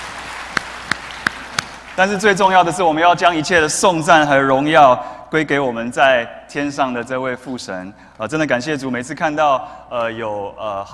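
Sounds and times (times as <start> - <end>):
sharp claps: 0.0 - 2.0
audience applause: 0.0 - 2.2
speech: 2.0 - 10.9.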